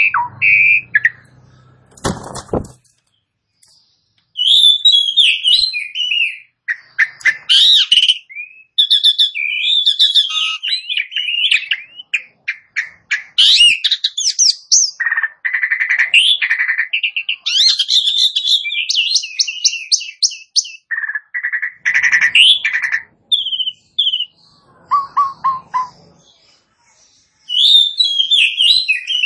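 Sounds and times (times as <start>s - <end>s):
Asian pied starling singing: 0.0s - 29.2s
clattering burst: 1.8s - 3.0s.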